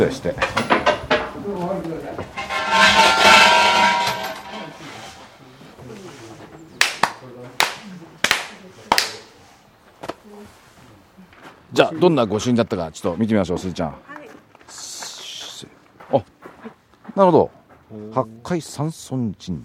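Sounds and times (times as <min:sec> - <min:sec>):
speech: 0:00.0 - 0:00.6, 0:11.8 - 0:14.1, 0:16.1 - 0:16.3, 0:17.2 - 0:19.6
murmured voices: 0:01.3 - 0:11.6
ritual hand claps at a Shinto shrine: 0:06.8 - 0:09.3.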